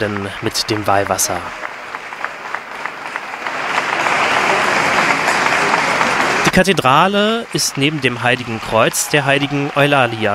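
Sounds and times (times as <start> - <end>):
speech: 0.0 - 1.7, 6.6 - 10.3
friendly applause in cathedral: 0.0 - 10.3.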